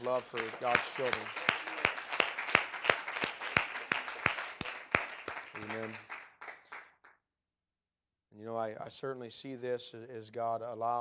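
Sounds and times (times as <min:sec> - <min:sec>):
speech: 0:00.0 - 0:01.4, 0:05.6 - 0:06.1, 0:08.4 - 0:10.9
crowd applauding: 0:00.0 - 0:07.0.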